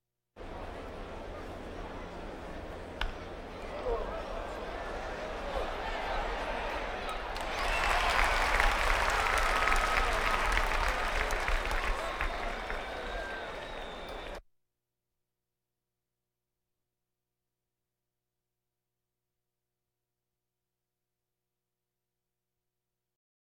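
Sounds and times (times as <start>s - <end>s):
crowds: 0.4s - 14.4s.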